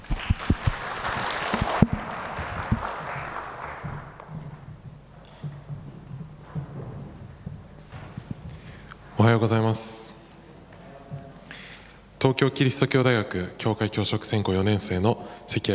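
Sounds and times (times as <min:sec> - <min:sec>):
audience applause welcoming a speaker: 0:00.0 - 0:04.2
speech: 0:09.2 - 0:10.0, 0:12.2 - 0:15.7.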